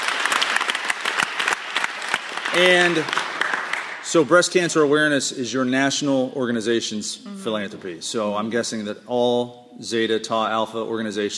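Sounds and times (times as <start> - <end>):
round of applause from a group: 0.0 - 4.2
speech: 2.6 - 3.3, 4.1 - 11.3.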